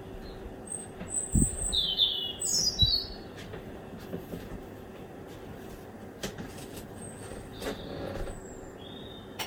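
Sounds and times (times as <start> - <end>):
birdsong at 1 am: 0.2 - 3.3, 7.1 - 9.4.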